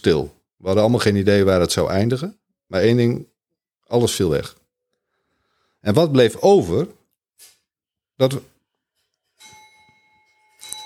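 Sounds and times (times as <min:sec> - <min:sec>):
speech: 0:00.0 - 0:03.3, 0:03.9 - 0:04.6, 0:05.8 - 0:07.5, 0:08.2 - 0:08.5
clock chiming: 0:09.4 - 0:10.8.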